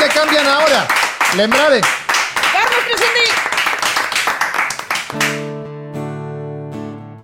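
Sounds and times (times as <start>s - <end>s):
audience applause: 0.0s - 5.5s
live music with steady sustained tones: 0.0s - 7.0s
speech: 0.3s - 2.0s.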